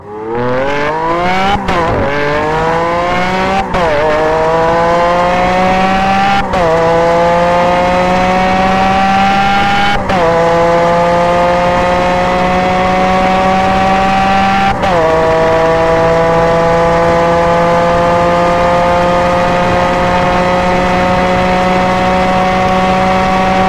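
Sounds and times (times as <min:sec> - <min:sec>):
Lamborghini Aventador engine: 0:00.0 - 0:23.6.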